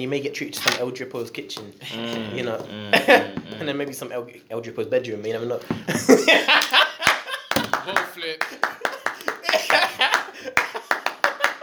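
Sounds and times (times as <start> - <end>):
speech: 0.0 - 6.8
laughter: 1.8 - 3.7, 5.7 - 11.6
clapping: 6.6 - 11.6.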